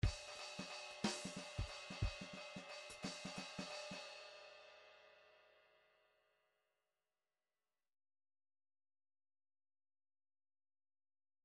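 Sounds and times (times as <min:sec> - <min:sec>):
rhythmic groove in three-four time: 0:00.0 - 0:03.9.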